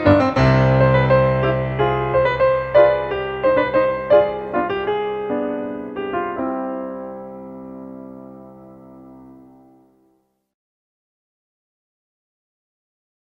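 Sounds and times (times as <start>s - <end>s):
keyboard fugue: 0.0s - 10.2s.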